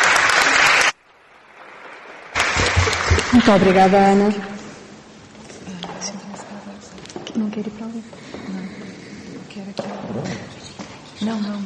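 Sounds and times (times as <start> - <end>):
audience applause: 0.0 - 4.3
speech: 3.3 - 4.5.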